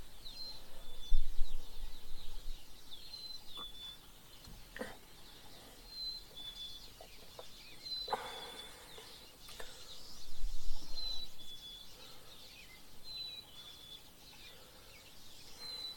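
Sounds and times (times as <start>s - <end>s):
birds chirping: 0.0s - 15.9s.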